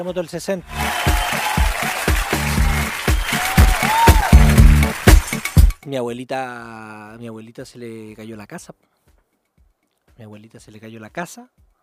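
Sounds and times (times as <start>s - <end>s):
speech: 0.0s - 1.9s, 5.9s - 8.9s, 10.2s - 11.7s
audience applause: 0.7s - 5.8s.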